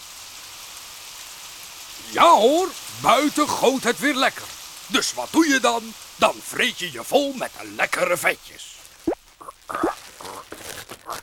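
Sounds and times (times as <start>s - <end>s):
speech: 2.0s - 8.8s
vacuum-packed smoked sausage packaging crinkling: 8.7s - 11.2s
tearing open vacuum-packed smoked sausage packaging: 9.4s - 11.2s.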